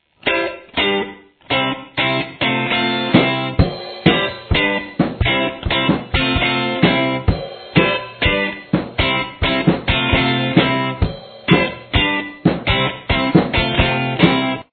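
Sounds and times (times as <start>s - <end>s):
guitar intro: 0.0s - 14.7s.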